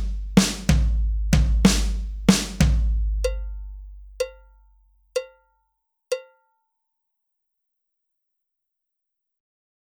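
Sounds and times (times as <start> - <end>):
tom drums at 63 bpm: 0.0 - 4.4.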